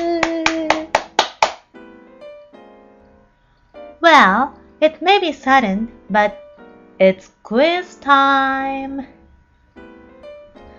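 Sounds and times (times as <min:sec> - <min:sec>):
crisp hand claps: 0:00.0 - 0:01.7
speech: 0:04.0 - 0:06.4, 0:07.0 - 0:09.2.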